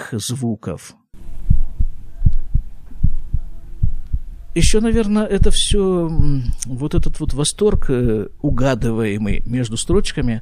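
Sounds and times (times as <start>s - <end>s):
speech: 0.1s - 1.0s, 4.6s - 10.3s
faint electronic hum: 1.2s - 10.3s
heartbeat played through a speaker: 1.2s - 10.3s.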